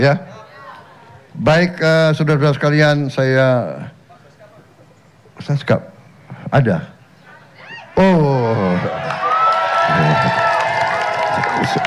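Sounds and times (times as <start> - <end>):
speech: 0.0 - 0.3, 1.4 - 4.0, 5.4 - 5.9, 6.5 - 6.9, 8.0 - 9.2, 11.6 - 11.8
crowd cheering and shouting: 7.6 - 11.8.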